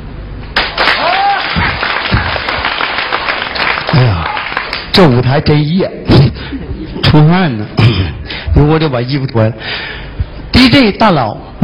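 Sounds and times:
audience applause: 0.6s - 4.9s
speech: 5.0s - 6.1s, 7.1s - 10.0s, 10.6s - 11.6s.

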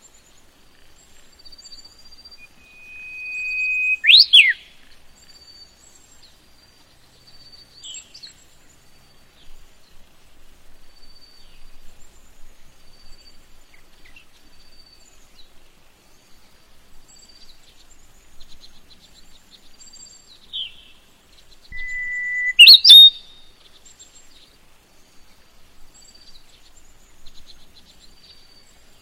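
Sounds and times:
bird chirps in a yellow rapeseed field: 2.2s - 4.6s, 21.7s - 23.4s.

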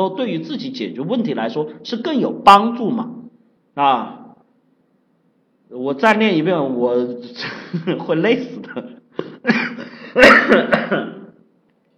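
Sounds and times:
speech: 0.0s - 3.2s, 3.8s - 4.2s, 5.7s - 9.6s, 10.2s - 11.2s
coughing: 8.7s - 11.4s.

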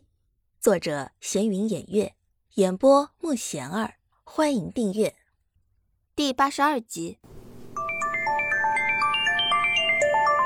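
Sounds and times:
speech: 0.6s - 5.2s, 6.2s - 7.3s
phone ringing: 7.3s - 10.4s.

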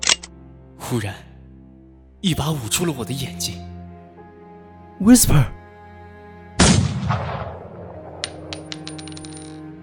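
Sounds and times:
speech: 0.9s - 1.3s, 2.2s - 3.7s, 5.0s - 5.6s
loud gunshot: 6.6s - 7.6s.

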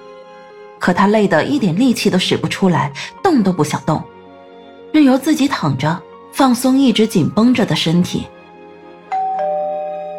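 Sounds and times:
speech: 0.8s - 4.1s, 4.9s - 8.4s
doorbell ringing: 9.1s - 10.1s.

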